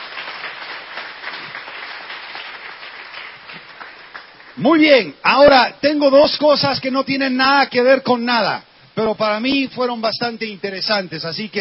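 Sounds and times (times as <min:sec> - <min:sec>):
audience applause: 0:00.0 - 0:04.6
speech: 0:04.6 - 0:11.6.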